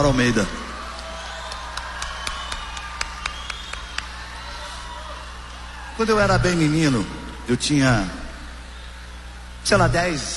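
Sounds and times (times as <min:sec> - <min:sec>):
speech: 0:00.0 - 0:00.6, 0:06.0 - 0:08.2, 0:09.6 - 0:10.3
audience applause: 0:00.0 - 0:06.1.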